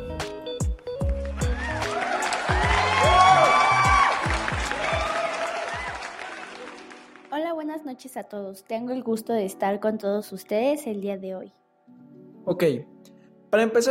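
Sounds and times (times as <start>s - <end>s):
audience applause: 1.2s - 7.3s
speech: 8.0s - 11.6s, 12.4s - 12.9s, 13.5s - 13.9s.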